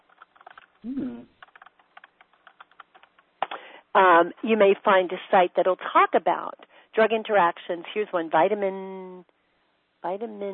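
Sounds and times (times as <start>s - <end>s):
typing on a computer keyboard into a search: 0.0s - 0.8s, 1.4s - 3.3s
speech: 0.8s - 1.4s, 4.0s - 9.4s, 10.0s - 10.5s.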